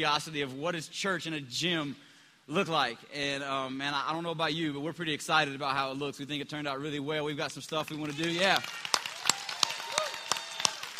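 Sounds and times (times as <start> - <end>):
speech: 0.0 - 8.9
audience clapping: 7.5 - 10.9.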